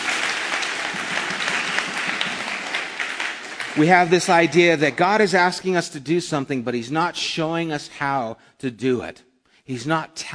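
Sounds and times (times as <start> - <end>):
audience applause: 0.0 - 4.8
speech: 3.8 - 10.3.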